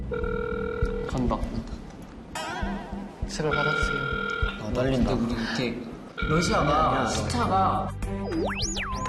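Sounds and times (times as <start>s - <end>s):
speech: 0.1s - 0.4s, 1.1s - 1.8s, 3.3s - 8.9s
electronic telephone ring tone while calling a number: 0.1s - 1.3s, 3.5s - 4.7s, 6.2s - 7.2s.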